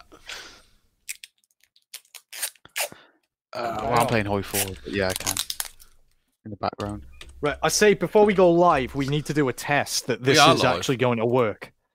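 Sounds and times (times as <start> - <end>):
adhesive tape pulled and torn to mend headphones: 1.1 - 3.0, 4.5 - 5.9
speech: 3.6 - 5.4, 6.5 - 11.7.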